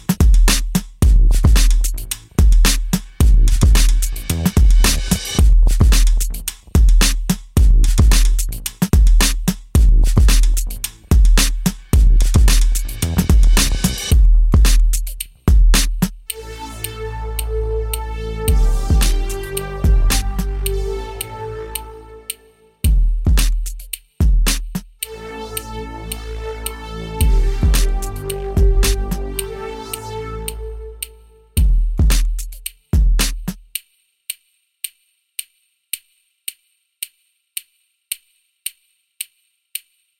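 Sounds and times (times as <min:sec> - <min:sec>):
hip hop music: 0:00.0 - 0:23.8, 0:25.0 - 0:32.6.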